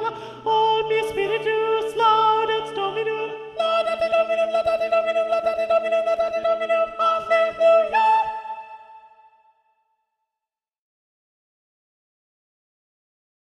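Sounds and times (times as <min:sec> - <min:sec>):
soprano singing: 0:00.0 - 0:09.4.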